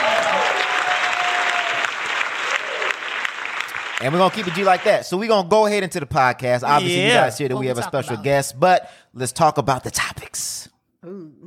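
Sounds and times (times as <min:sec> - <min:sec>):
audience applause: 0:00.0 - 0:05.1
speech: 0:04.0 - 0:11.2.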